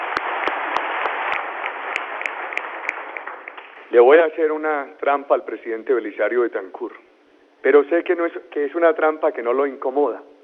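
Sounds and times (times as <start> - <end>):
audience applause: 0.0 - 3.8
speech: 3.9 - 7.0, 7.6 - 10.3.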